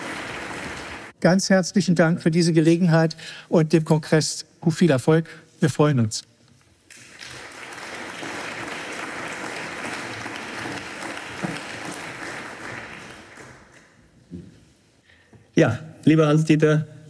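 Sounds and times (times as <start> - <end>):
loud sustained audience applause: 0.0 - 1.2, 6.9 - 14.0
speech: 1.2 - 6.3, 15.6 - 17.0.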